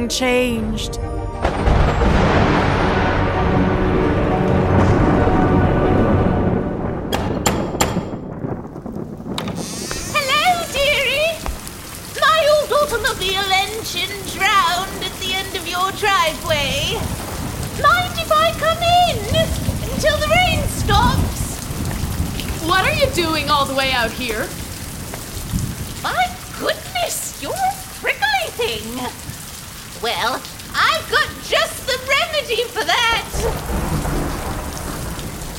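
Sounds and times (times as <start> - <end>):
speech: 0.0 - 2.2, 23.2 - 24.6, 30.0 - 30.5, 32.4 - 33.9
deep rumbles of thunder: 1.4 - 35.5
heavy rain: 1.4 - 35.5
high wavering voice-like tones: 9.6 - 11.4.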